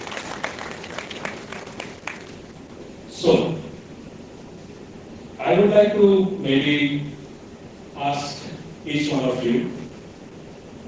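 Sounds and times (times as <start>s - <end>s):
audience applause for panelists: 0.0s - 2.5s
speech: 5.5s - 7.2s, 8.0s - 9.8s.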